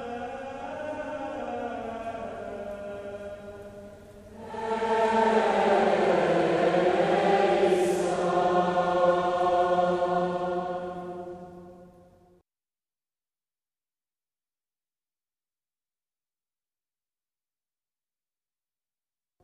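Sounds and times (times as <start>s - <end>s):
Gregorian Kyrie chant: 0.0s - 12.2s.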